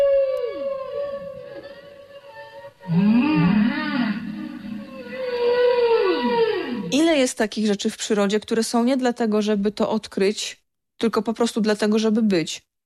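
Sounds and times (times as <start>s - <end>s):
whale calls with underwater echo: 0.0s - 7.0s
speech: 7.4s - 12.7s.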